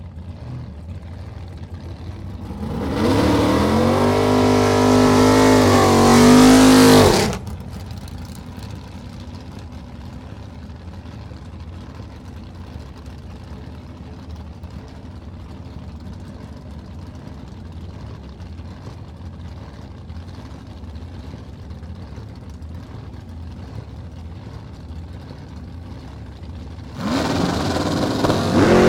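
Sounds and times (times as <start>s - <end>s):
dragster approaching: 0.0s - 28.8s
dragster engine revving: 0.1s - 8.6s, 22.0s - 28.8s.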